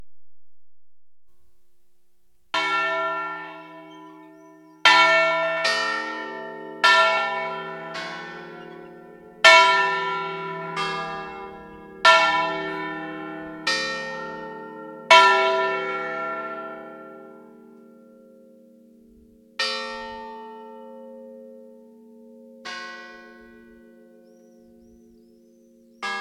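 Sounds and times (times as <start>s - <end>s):
bells ringing: 2.6s - 16.6s.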